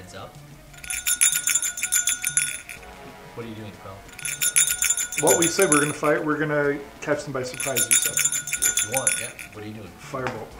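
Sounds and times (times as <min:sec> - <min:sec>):
speech: 0:00.1 - 0:00.5, 0:03.4 - 0:04.5, 0:05.2 - 0:08.3, 0:08.9 - 0:10.5
voice imitating a ringing bell: 0:00.8 - 0:02.8, 0:04.1 - 0:06.2, 0:07.6 - 0:09.7.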